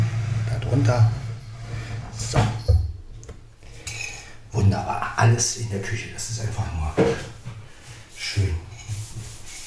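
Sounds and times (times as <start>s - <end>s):
speech: 0.8s - 1.2s, 2.2s - 2.6s, 4.6s - 7.3s, 8.3s - 8.6s
coffee cup knocking against a hard surface: 2.6s - 3.4s.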